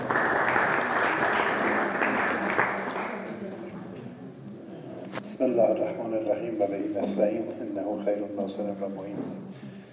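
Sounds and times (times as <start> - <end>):
crowd clapping: 0.0 - 3.5
speech: 5.4 - 9.8.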